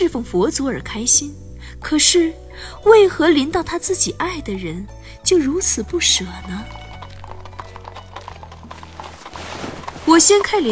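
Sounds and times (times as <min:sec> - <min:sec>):
speech: 0:00.0 - 0:06.8, 0:10.1 - 0:10.7
hooves of a fast horse-drawn carriage clip-clopping: 0:06.0 - 0:10.7.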